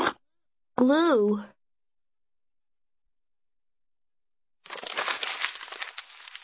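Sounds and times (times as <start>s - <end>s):
speech: 0.8s - 1.6s
paper crumpling: 4.6s - 6.4s.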